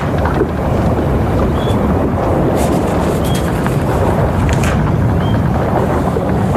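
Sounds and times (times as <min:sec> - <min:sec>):
rigging creaking and squeaking: 0:00.0 - 0:05.5
broad wash of the sea: 0:00.0 - 0:06.5
steady wind across a caravel deck: 0:00.0 - 0:06.5.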